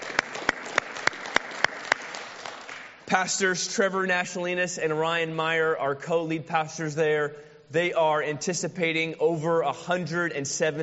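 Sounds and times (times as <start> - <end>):
audience applause: 0.0 - 3.0
speech: 3.1 - 10.8.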